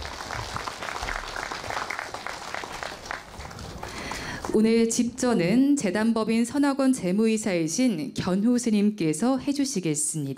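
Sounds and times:
audience applause: 0.0s - 4.6s
speech: 4.5s - 10.3s.

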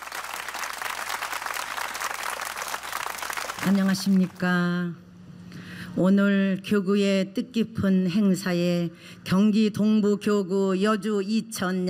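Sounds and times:
audience applause: 0.0s - 4.2s
speech: 3.6s - 5.0s, 6.0s - 11.8s.

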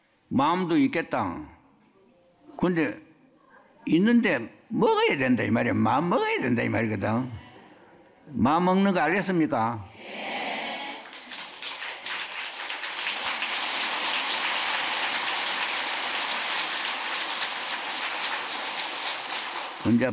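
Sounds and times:
speech: 0.3s - 1.6s, 2.6s - 3.0s, 3.8s - 7.4s, 8.3s - 10.3s, 19.8s - 20.1s
audience applause: 10.8s - 20.1s.

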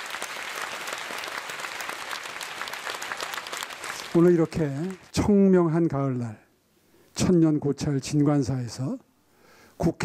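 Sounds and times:
audience applause: 0.0s - 5.1s
speech: 4.2s - 6.4s, 7.2s - 9.1s, 9.8s - 10.0s.

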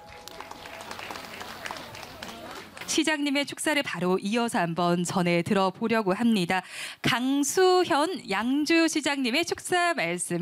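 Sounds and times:
crowd clapping: 0.0s - 3.2s
speech: 2.9s - 10.4s.

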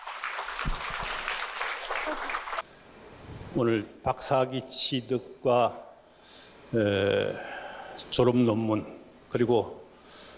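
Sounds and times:
audience applause: 0.0s - 2.6s
speech: 3.6s - 5.9s, 6.7s - 9.8s.

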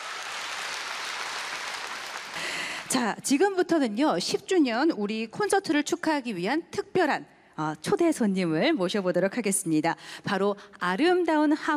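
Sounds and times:
concert audience applause after a Korean Buddhist monk's dance: 0.0s - 3.0s
speech: 2.9s - 11.7s.

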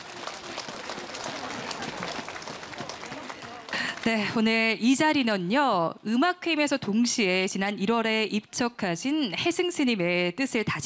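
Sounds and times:
audience applause: 0.0s - 4.4s
speech: 4.0s - 10.8s.

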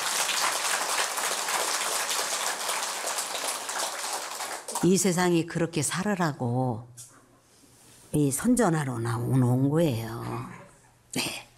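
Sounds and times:
audience clapping: 0.0s - 5.0s
speech: 4.8s - 7.0s, 8.1s - 11.3s.

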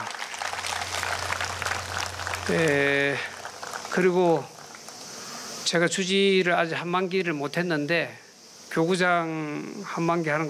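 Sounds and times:
audience applause: 0.0s - 5.3s
speech: 2.5s - 4.6s, 5.7s - 10.4s.

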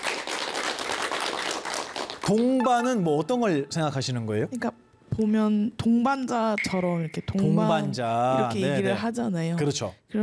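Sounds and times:
audience clapping at a Korean talk session: 0.0s - 2.9s
speech: 2.3s - 10.2s.

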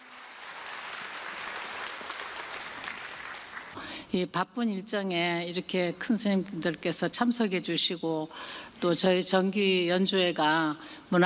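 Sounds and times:
audience applause: 0.0s - 3.8s
speech: 4.1s - 11.2s.

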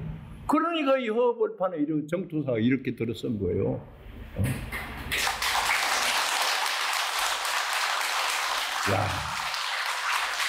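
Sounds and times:
speech: 0.5s - 4.8s, 8.9s - 9.4s
audience applause: 5.1s - 10.4s.

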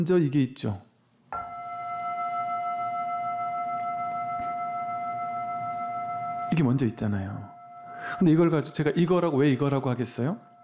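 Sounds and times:
speech: 0.0s - 0.9s, 6.6s - 7.5s, 8.1s - 10.5s
bell ringing: 1.4s - 10.6s.

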